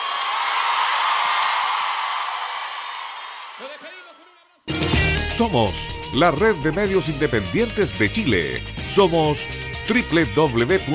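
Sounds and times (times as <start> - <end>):
audience applause: 0.0 - 4.1
speech: 5.4 - 10.9.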